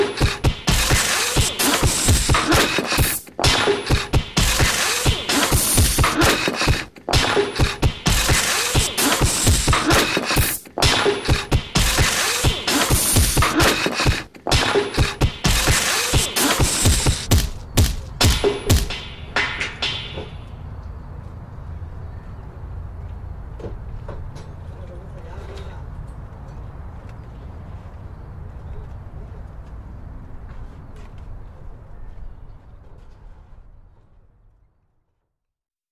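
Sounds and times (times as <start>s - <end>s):
beats made from construction site sounds: 0.0s - 20.6s.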